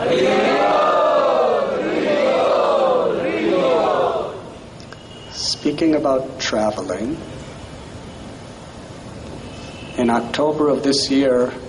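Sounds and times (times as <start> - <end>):
crowd loudly chanting in unison: 0.0 - 4.6
speech: 0.1 - 0.4, 5.8 - 7.4, 10.0 - 11.6.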